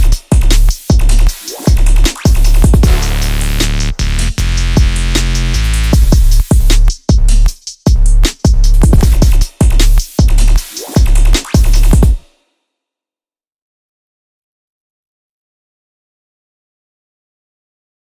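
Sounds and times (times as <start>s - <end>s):
dubstep drums: 0.0s - 12.2s.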